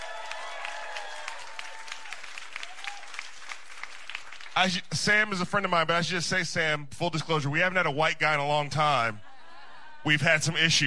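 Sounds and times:
audience applause greeting a radio producer: 0.0s - 4.8s
speech: 4.6s - 9.2s, 10.0s - 10.8s
laughter: 9.0s - 10.8s.

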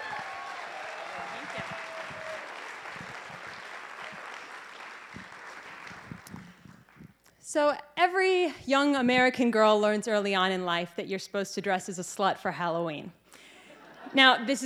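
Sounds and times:
audience applause welcoming a speaker: 0.0s - 7.0s
speech: 7.5s - 13.2s, 14.1s - 14.6s.

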